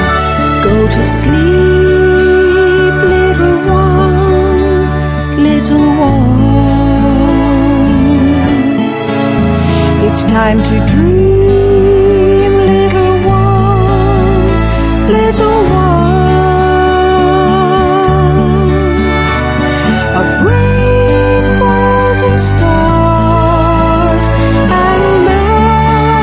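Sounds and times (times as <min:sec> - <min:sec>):
lullaby: 0:00.1 - 0:26.2.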